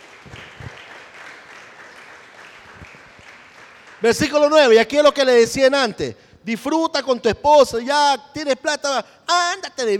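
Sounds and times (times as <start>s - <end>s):
audience applause: 0.0s - 4.1s
speech: 4.0s - 9.9s.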